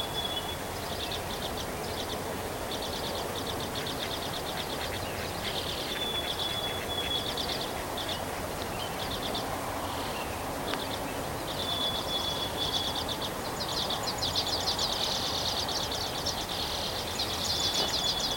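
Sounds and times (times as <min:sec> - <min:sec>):
bird song: 0:00.0 - 0:18.3.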